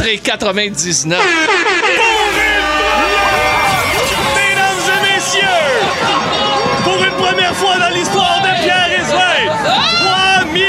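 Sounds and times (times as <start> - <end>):
speech: 0.0 - 3.2
Golden Buzzer sound effect: 1.8 - 6.7
excited crowd screaming and cheering: 1.8 - 10.6.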